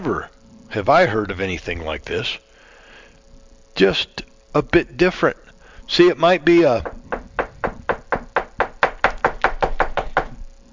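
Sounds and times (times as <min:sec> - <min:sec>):
speech: 0:00.1 - 0:02.5, 0:03.8 - 0:07.0
rapid knocking at a door: 0:06.8 - 0:10.4.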